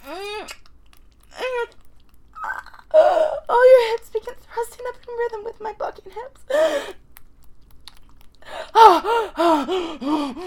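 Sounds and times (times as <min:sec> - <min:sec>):
woman gasping and moaning: 0:00.0 - 0:00.6, 0:02.4 - 0:04.0, 0:06.5 - 0:07.0, 0:08.4 - 0:10.4
speech: 0:09.4 - 0:10.4.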